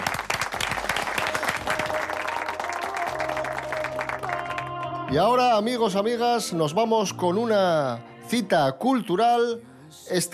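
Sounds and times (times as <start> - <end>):
applause: 0.0 - 5.2
speech: 5.1 - 10.3.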